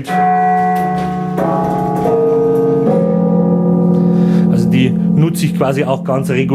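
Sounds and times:
speech: 0:00.0 - 0:00.8, 0:05.2 - 0:06.5
carillon of 60 bells playing: 0:00.0 - 0:06.5.

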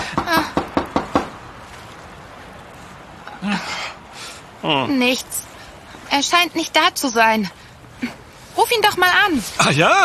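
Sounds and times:
knocking on a locked door: 0:00.2 - 0:01.4
speech: 0:04.6 - 0:05.5, 0:06.1 - 0:10.0.

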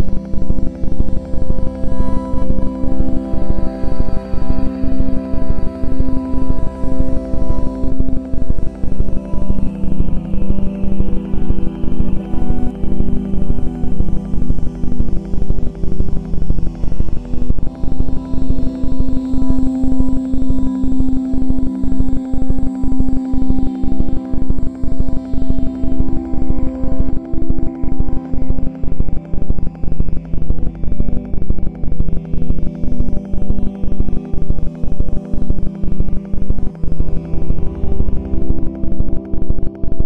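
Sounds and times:
binaural beats low drone at 4-6 Hz: 0:00.0 - 0:40.0.

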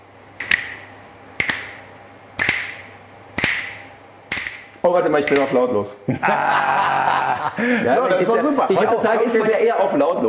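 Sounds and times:
finger snapping: 0:00.4 - 0:00.8, 0:01.4 - 0:01.8, 0:02.4 - 0:04.6
speech: 0:04.8 - 0:10.2
laughter: 0:06.1 - 0:10.0.

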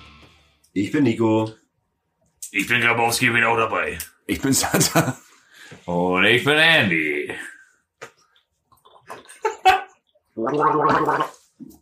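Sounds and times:
speech: 0:00.8 - 0:01.6, 0:02.5 - 0:07.5, 0:10.4 - 0:11.8
gulps of a small Berliner beer: 0:08.4 - 0:09.4, 0:10.0 - 0:11.8.

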